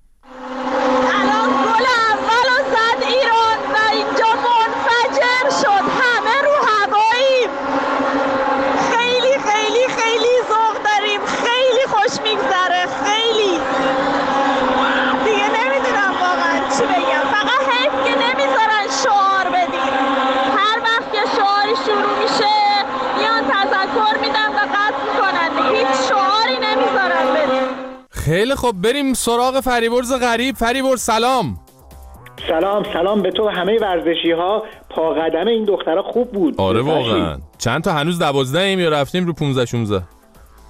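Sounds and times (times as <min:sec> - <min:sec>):
stadium crowd cheering after a goal: 0:00.3 - 0:31.6
speech: 0:28.6 - 0:31.6, 0:32.5 - 0:40.1.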